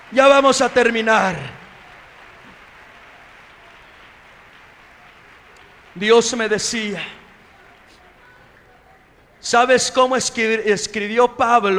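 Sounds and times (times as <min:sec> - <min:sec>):
audience applause: 0:00.0 - 0:11.7
laughter: 0:00.0 - 0:11.7
speech: 0:00.1 - 0:01.6, 0:06.0 - 0:07.2, 0:09.4 - 0:11.7.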